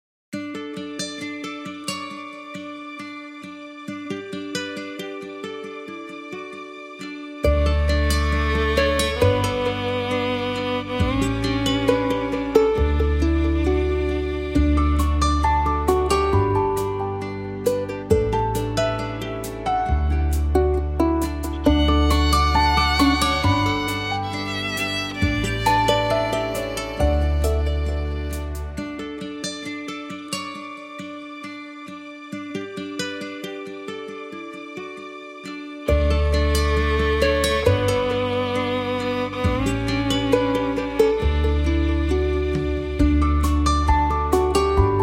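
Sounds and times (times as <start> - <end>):
uplifting music cue: 7.4 - 29.0, 35.9 - 45.0.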